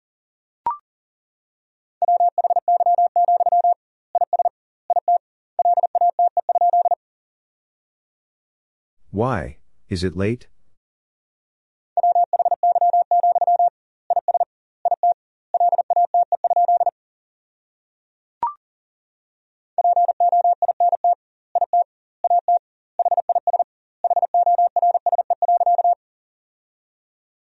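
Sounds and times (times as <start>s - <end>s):
Morse code beeps: 2.0s - 7.0s, 12.0s - 16.9s, 19.8s - 26.0s
speech: 9.1s - 10.5s.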